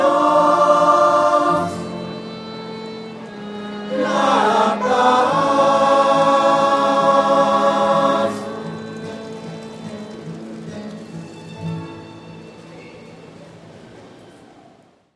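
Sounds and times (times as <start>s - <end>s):
voices singing: 0.0s - 9.4s.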